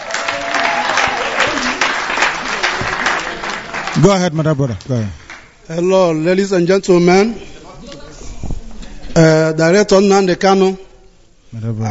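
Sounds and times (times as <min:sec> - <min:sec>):
audience applauding: 0:00.0 - 0:05.6
speech: 0:04.0 - 0:07.5, 0:09.2 - 0:10.9, 0:11.5 - 0:11.8.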